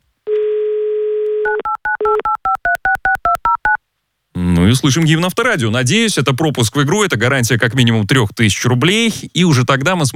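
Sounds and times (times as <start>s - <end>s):
telephone dial tone: 0.3s - 2.8s
telephone keypad tones: 1.2s - 3.8s
speech: 4.7s - 10.1s.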